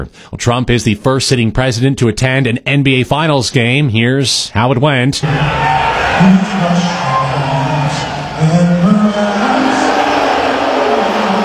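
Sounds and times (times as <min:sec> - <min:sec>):
speech: 0:00.0 - 0:07.2
arena crowd booing at Madison Square Garden: 0:05.2 - 0:11.4.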